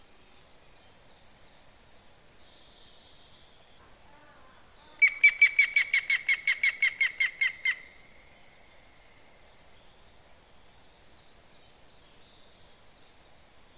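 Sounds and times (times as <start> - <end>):
yamagera bird calling: 4.1 - 8.1.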